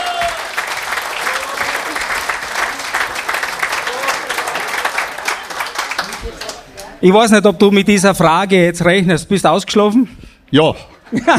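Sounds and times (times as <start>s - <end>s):
audience clapping: 0.0s - 7.0s
speech: 7.0s - 11.3s
laughter: 11.0s - 11.3s.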